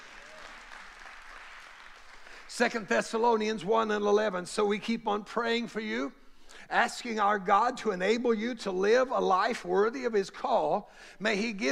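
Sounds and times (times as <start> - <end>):
audience hand clapping: 0.0 - 2.9
speech: 2.5 - 11.7.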